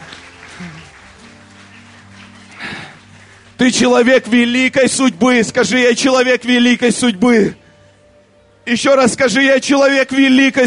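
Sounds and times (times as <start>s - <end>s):
audience applause: 0.0s - 3.6s
speech: 0.6s - 0.9s, 3.6s - 7.6s, 8.7s - 10.6s.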